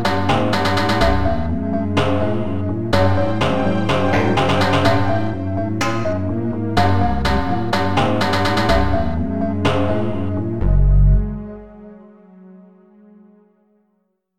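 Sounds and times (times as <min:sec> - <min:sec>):
ambient pentatonic music: 0:00.0 - 0:13.7
pentatonic solo: 0:03.0 - 0:08.3.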